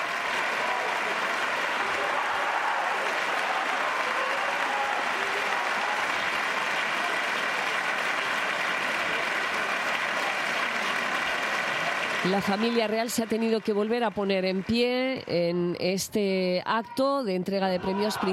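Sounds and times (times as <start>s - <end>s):
audience shouts cheering the king and royal family: 0.0s - 7.7s, 17.7s - 18.3s
standing audience at the Princess of Girona awards applauding the king: 0.0s - 15.6s
speech: 12.2s - 18.3s.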